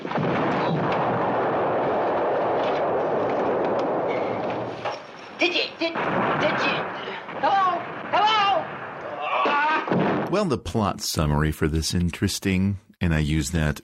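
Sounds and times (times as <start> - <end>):
artillery shelling explosions: 0.0 - 10.4
speech: 5.4 - 8.2, 10.3 - 13.8.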